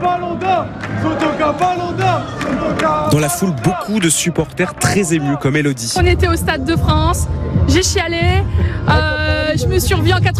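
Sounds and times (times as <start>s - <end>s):
large crowd roaring and cheering: 0.0s - 10.3s
speech: 0.0s - 10.3s
scattered clapping: 0.4s - 3.7s.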